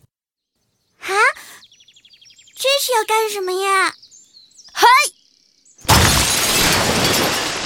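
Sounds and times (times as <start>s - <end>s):
speech: 2.8s - 4.0s
stone smashing a water vat: 5.8s - 7.6s.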